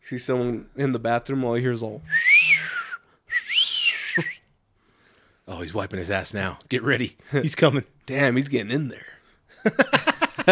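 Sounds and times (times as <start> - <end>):
speech: 0.1 - 2.3, 5.5 - 10.5
whistle tones: 2.0 - 4.5
laughter: 9.6 - 10.5.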